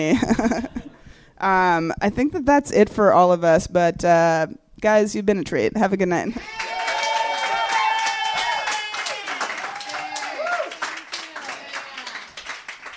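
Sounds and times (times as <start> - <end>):
speech: 0.0 - 6.8
audience cheering: 6.4 - 12.9.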